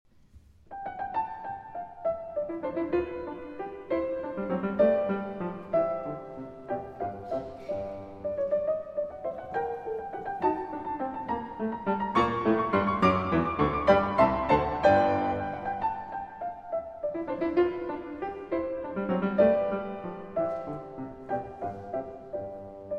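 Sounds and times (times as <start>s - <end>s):
piano sonata in C major: 0.1s - 22.9s.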